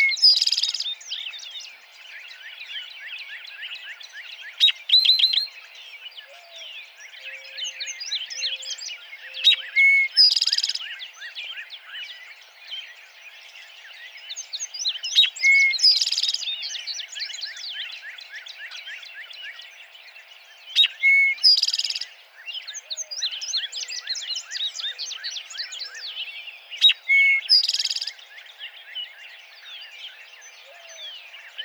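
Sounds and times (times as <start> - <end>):
Eastern Towhee vocalizing: 0.0 - 31.6.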